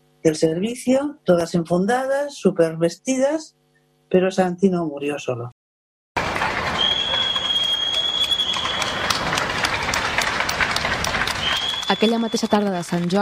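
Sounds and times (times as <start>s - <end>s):
speech: 0.2s - 5.6s, 11.9s - 13.2s
balcony applause for health workers: 6.2s - 13.2s.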